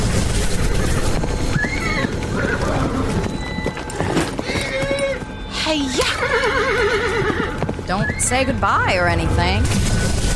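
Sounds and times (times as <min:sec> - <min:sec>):
busy noisy background: 0:00.0 - 0:10.3
horse hooves clip-clopping: 0:00.1 - 0:09.1
horse whinny: 0:01.5 - 0:08.4
speech: 0:07.9 - 0:10.0.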